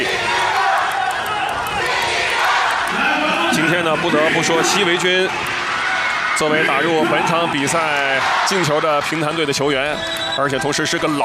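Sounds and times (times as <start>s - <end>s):
stadium crowd chanting at a football match: 0.0s - 8.8s
speech: 3.7s - 5.5s, 6.4s - 11.2s.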